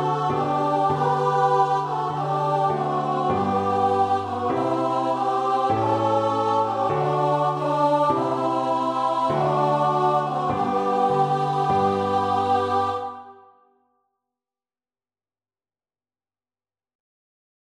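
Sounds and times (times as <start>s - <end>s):
choir singing: 0.0s - 13.6s.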